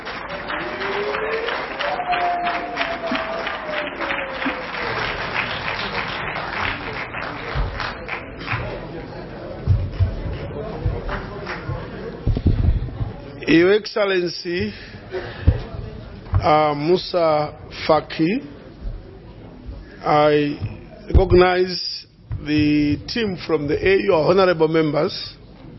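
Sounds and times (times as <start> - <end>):
crowd applauding in a parliamentary chamber: 0.0 - 12.4
murmuring voices: 0.4 - 13.7, 14.5 - 21.6
dull thumps: 9.6 - 13.4, 15.4 - 16.6, 20.6 - 21.6, 22.2 - 23.2
speech: 13.5 - 14.9, 16.4 - 18.5, 20.0 - 21.8, 22.4 - 25.4.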